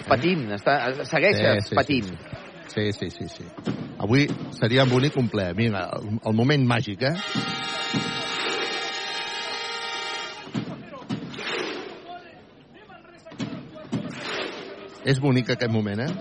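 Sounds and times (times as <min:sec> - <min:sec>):
arena crowd doing the viking thunderclap: 0:00.0 - 0:03.4
speech: 0:00.1 - 0:08.5, 0:15.1 - 0:16.1
horn-like drone in an arena: 0:07.2 - 0:10.4.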